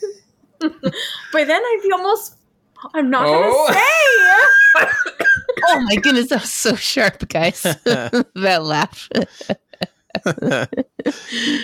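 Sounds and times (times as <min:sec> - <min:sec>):
speech: 0:00.6 - 0:09.6, 0:10.2 - 0:11.6
man coughing: 0:03.5 - 0:06.1
laughter: 0:03.6 - 0:06.2, 0:07.6 - 0:11.6.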